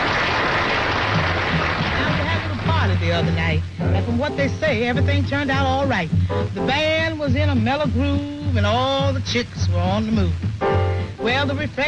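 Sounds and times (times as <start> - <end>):
audience applause for a married couple: 0.0 - 3.2
speech: 3.0 - 10.5, 11.2 - 11.8.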